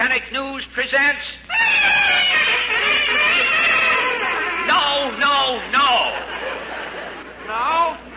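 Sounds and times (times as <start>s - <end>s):
speech: 0.0s - 2.4s
newsreel fanfare played on two trumpets: 1.5s - 5.0s
laughter: 1.7s - 8.1s.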